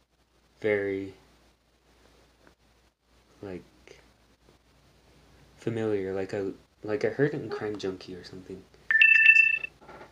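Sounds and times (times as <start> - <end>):
speech: 0.6 - 1.2, 3.4 - 3.7, 5.6 - 8.7
mobile phone ringtone: 8.9 - 9.7.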